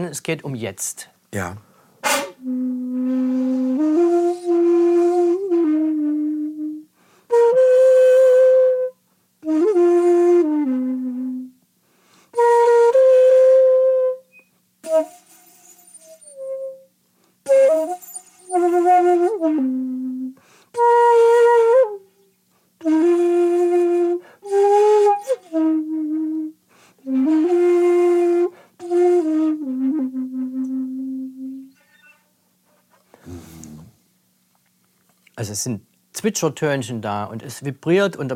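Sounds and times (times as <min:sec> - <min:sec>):
speech: 0:00.0 - 0:01.7, 0:35.6 - 0:38.3
Japanese flute playing slow breathy held notes: 0:02.0 - 0:22.2, 0:22.8 - 0:32.3.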